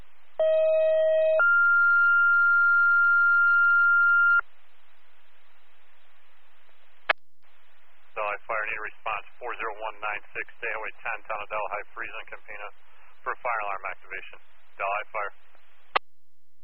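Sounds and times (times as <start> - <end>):
two-tone dispatch alert tones over radio for a fire alarm activation: 0.4 - 4.4
speech: 8.7 - 15.4.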